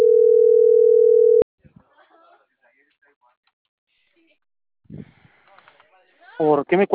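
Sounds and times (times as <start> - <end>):
telephone line tone after a dropped call: 0.0 - 1.4.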